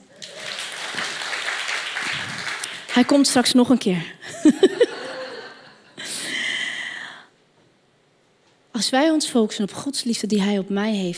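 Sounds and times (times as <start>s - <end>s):
laughter: 0.0s - 1.4s, 4.3s - 6.0s
audience applause: 0.0s - 3.2s
speech: 3.0s - 4.8s, 8.8s - 11.1s.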